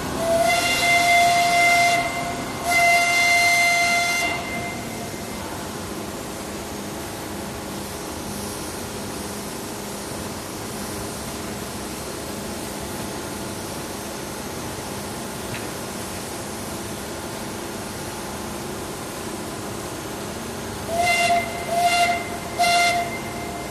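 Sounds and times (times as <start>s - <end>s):
blast site warning whistle: 0.2s - 5.5s, 20.9s - 23.6s.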